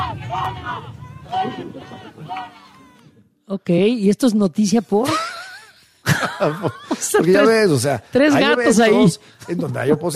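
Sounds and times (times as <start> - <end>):
distant people shouting: 0.0 - 3.2
murmur: 0.0 - 3.2
laughter: 1.3 - 3.0, 5.0 - 7.9
speech: 1.6 - 2.8, 3.5 - 5.2, 6.4 - 10.1.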